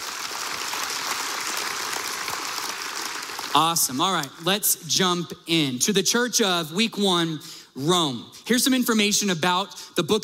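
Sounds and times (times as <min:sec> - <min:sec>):
audience round of applause: 0:00.0 - 0:03.8
speech: 0:03.6 - 0:10.2.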